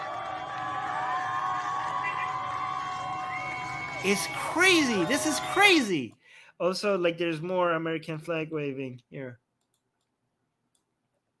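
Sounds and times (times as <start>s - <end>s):
crowd cheering in street protest in Iran: 0.0s - 6.1s
speech: 4.0s - 9.4s.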